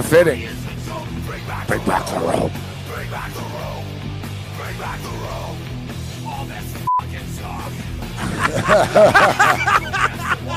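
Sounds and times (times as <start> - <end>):
speech: 0.1 - 3.8, 4.7 - 5.6, 7.5 - 10.5
beeping tones: 6.2 - 7.1
laughter: 8.0 - 10.5.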